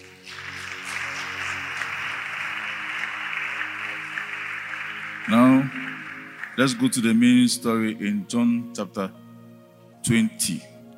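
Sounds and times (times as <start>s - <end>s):
audience clapping: 0.0s - 7.6s
speech: 5.3s - 5.5s, 6.6s - 9.2s, 10.0s - 10.7s.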